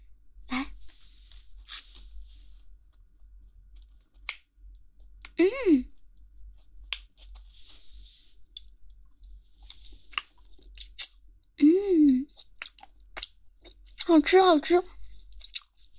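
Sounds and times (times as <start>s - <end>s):
chewing chewy food: 2.9s - 7.6s, 8.4s - 11.4s, 12.3s - 14.1s, 15.0s - 15.9s
person humming: 5.4s - 5.9s, 11.6s - 12.3s
speech: 14.1s - 15.0s.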